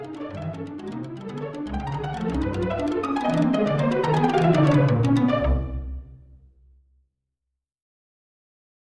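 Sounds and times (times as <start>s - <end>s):
string quartet playing: 0.0s - 6.0s.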